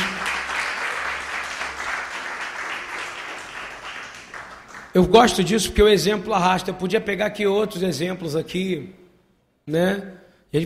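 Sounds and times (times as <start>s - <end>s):
crowd applauding: 0.0s - 5.4s
speech: 5.0s - 9.0s, 9.6s - 10.6s.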